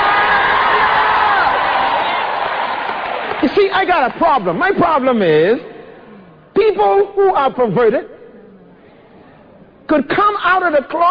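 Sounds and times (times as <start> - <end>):
large church crowd screaming and cheering: 0.0 - 3.5
speech: 3.4 - 5.7, 6.6 - 8.1, 9.9 - 11.0.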